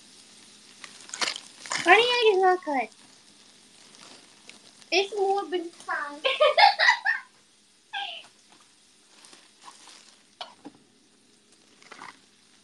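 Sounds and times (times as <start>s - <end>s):
oil sizzling in a frying pan: 0.0s - 12.6s
speech: 1.8s - 3.0s, 4.9s - 6.9s
laughter: 6.2s - 7.3s
high wavering cries: 7.9s - 8.3s.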